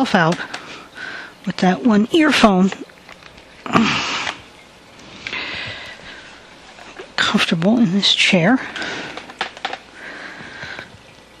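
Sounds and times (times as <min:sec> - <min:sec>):
speech: 0:00.0 - 0:00.5, 0:01.4 - 0:02.9, 0:07.3 - 0:09.0
indoor water fountain running: 0:00.0 - 0:11.3.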